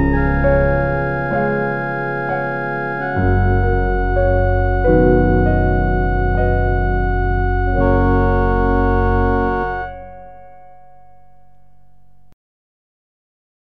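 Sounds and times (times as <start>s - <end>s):
organ: 0.0s - 10.7s
piano: 0.0s - 12.3s.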